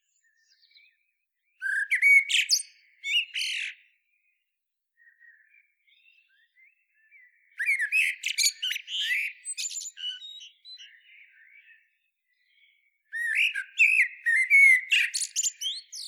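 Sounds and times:
common blackbird song: 0.0s - 16.0s.

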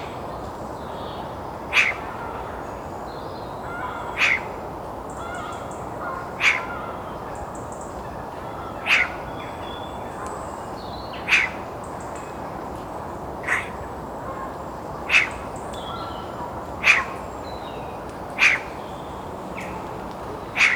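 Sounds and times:
Eurasian magpie harsh call: 1.7s - 2.2s, 3.7s - 4.6s, 5.2s - 7.0s, 8.6s - 9.4s, 11.2s - 11.7s, 15.1s - 17.3s, 18.4s - 18.8s, 20.5s - 20.7s.

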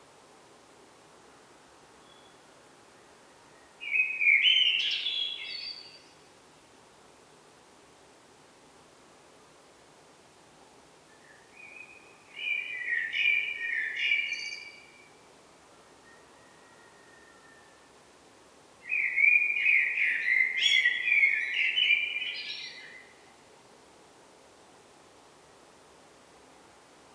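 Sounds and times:
common blackbird whistled song: 3.8s - 6.0s, 11.1s - 15.1s, 18.8s - 23.1s.

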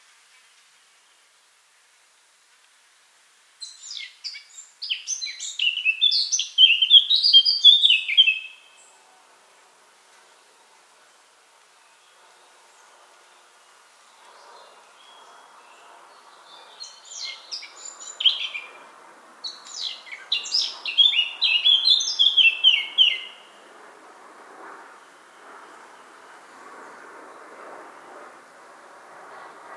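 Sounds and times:
Eurasian blackcap song: 3.6s - 8.9s, 14.0s - 18.8s, 19.4s - 23.5s.

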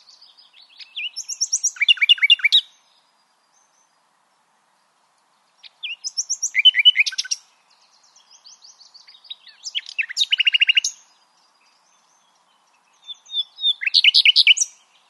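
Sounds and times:
Common nightingale song: 0.0s - 4.0s, 5.3s - 15.0s.

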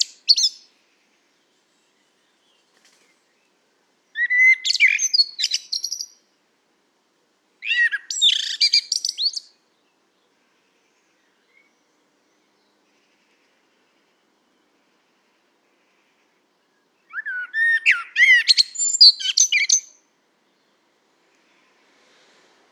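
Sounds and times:
common blackbird singing: 0.0s - 0.7s, 4.2s - 6.2s, 7.6s - 9.6s, 16.7s - 20.8s.

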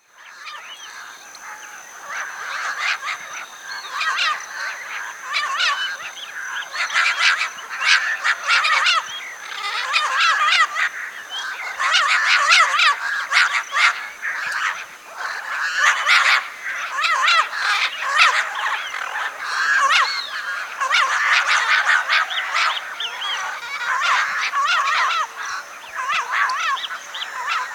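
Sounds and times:
birds chirping in a chorus: 0.0s - 27.7s.

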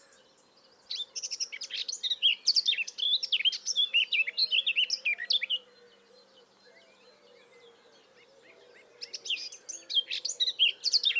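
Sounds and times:
Eurasian blackcap singing: 0.9s - 5.6s, 9.1s - 11.1s.

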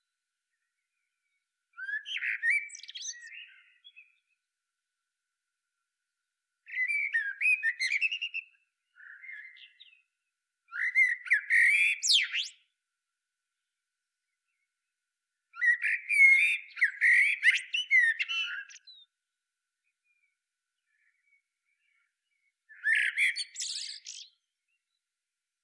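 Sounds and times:
Eurasian blackbird song: 0.6s - 4.4s, 6.6s - 10.1s, 10.7s - 12.7s, 15.5s - 19.1s, 19.8s - 25.0s.

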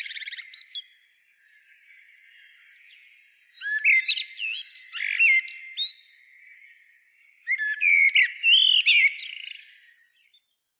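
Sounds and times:
common blackbird song: 0.0s - 10.7s.

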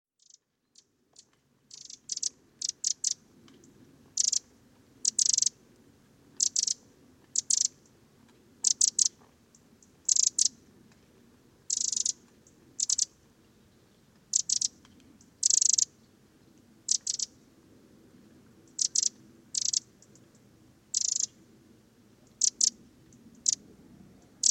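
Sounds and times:
Eurasian wren scolding: 0.2s - 3.2s, 4.2s - 4.4s, 5.1s - 5.5s, 6.4s - 6.8s, 10.1s - 10.5s, 11.7s - 13.1s, 14.3s - 15.9s, 16.9s - 17.3s, 18.7s - 19.8s, 22.3s - 22.7s
low background hiss: 0.2s - 24.4s.

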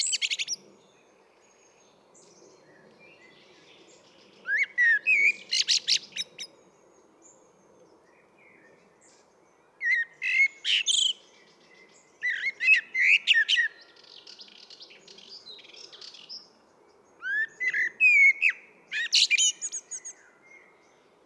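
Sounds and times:
common blackbird singing: 0.0s - 16.6s, 17.2s - 21.0s
soft hiss: 0.0s - 21.2s.

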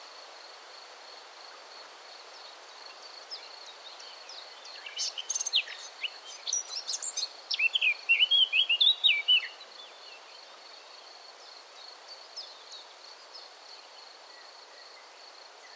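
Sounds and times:
Eurasian blackcap Sylvia atricapilla warbling song: 4.7s - 9.6s.

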